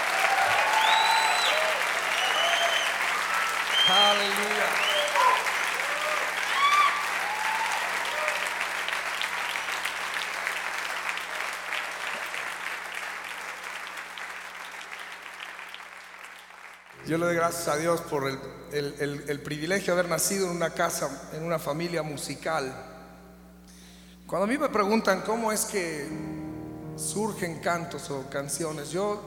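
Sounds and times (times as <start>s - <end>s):
applause at a church worship service: 0.0s - 17.0s
speech: 17.1s - 22.9s, 24.3s - 26.4s, 27.0s - 29.2s.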